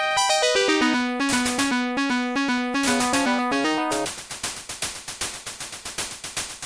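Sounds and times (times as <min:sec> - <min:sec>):
final boss music: 0:00.2 - 0:04.1.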